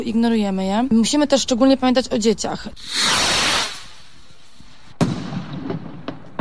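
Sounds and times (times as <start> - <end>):
speech: 0.0 - 3.5
firecrackers exploding: 2.8 - 6.3.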